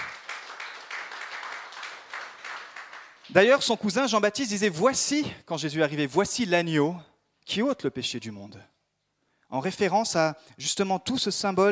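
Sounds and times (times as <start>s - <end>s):
audience applauding: 0.0s - 3.7s
speech: 3.3s - 8.7s, 9.5s - 11.7s.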